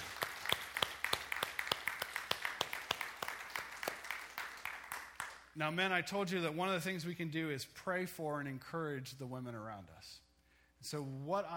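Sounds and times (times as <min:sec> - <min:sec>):
audience applause: 0:00.0 - 0:05.4
speech: 0:05.6 - 0:10.2, 0:10.8 - 0:11.5.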